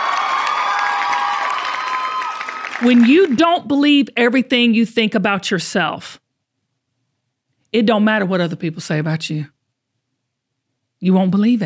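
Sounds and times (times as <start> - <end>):
crowd cheering and whooping: 0.0 - 3.4
audience applause: 0.0 - 3.6
speech: 2.8 - 6.2, 7.7 - 9.6, 11.0 - 11.6.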